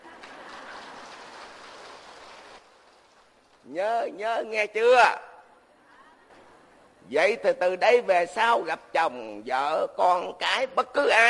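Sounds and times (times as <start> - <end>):
audience applause and cheering: 0.0 - 3.4
speech: 3.7 - 5.3, 7.1 - 11.2.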